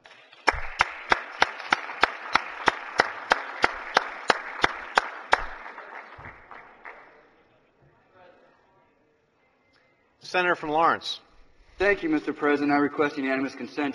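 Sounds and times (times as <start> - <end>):
applause welcoming guests in the Missouri Senate chamber: 0.0 - 7.4
speech: 10.3 - 13.9.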